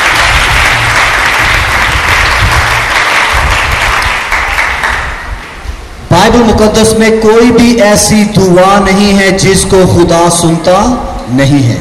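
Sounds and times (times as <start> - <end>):
audience applause: 0.0 - 5.4
speech: 6.2 - 11.7.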